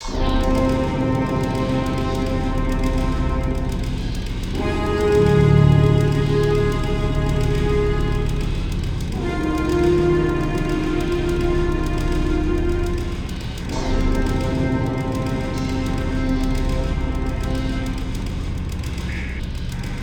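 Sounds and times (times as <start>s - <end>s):
suspense music: 0.0s - 20.0s.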